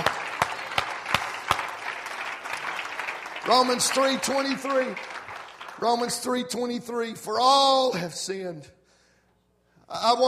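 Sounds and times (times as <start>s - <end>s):
audience clapping hands: 0.0s - 7.0s
speech: 3.4s - 5.1s, 5.8s - 8.8s, 9.9s - 10.2s.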